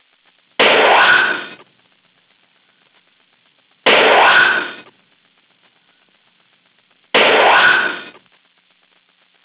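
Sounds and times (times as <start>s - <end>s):
photon torpedo shots: 0.6s - 1.6s, 3.8s - 4.8s, 7.1s - 8.2s.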